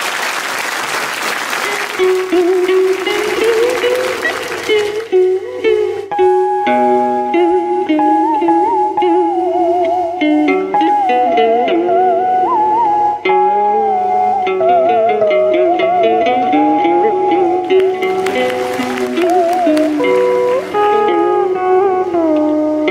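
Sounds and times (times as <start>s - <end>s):
audience applause at a live music show: 0.0s - 5.2s, 17.7s - 21.3s
crowd noise: 0.0s - 6.2s, 15.8s - 22.3s
melodic music: 1.9s - 9.5s, 10.5s - 22.6s.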